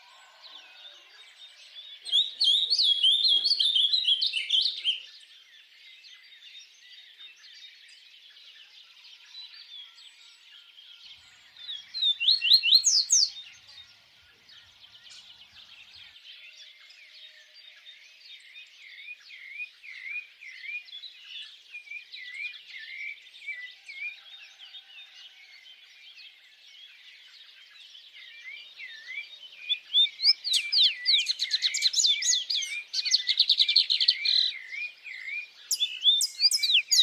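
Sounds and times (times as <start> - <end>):
birds chirping in a dense chorus: 0.0 - 37.0.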